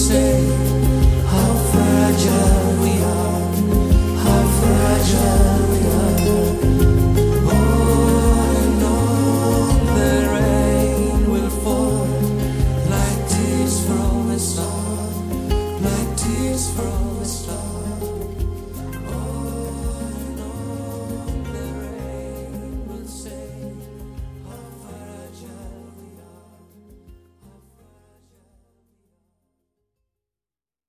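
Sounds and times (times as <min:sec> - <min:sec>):
lead guitar: 0:00.0 - 0:24.6
background vocals: 0:00.0 - 0:28.6.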